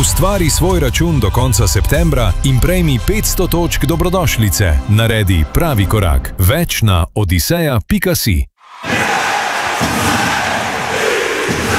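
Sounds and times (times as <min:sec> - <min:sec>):
speech: 0:00.0 - 0:09.0
ice hockey crowd cheering and shouting: 0:08.6 - 0:11.7.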